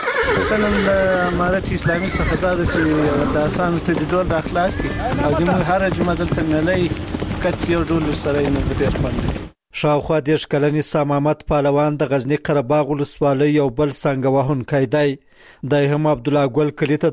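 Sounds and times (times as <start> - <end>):
horse whinnying at a sango-striking match in Qarabagh district, Ghazni: 0.0 - 9.5
horse hooves clip-clopping: 0.1 - 9.6
speech: 0.5 - 17.1.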